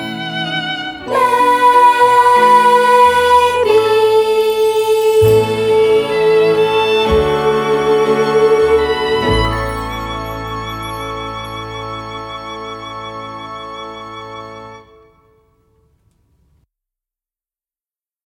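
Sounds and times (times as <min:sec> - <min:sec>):
vocals: 0:00.2 - 0:11.0.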